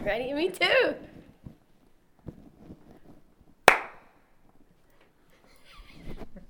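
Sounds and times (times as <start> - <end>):
hand clap: 3.7 - 4.1.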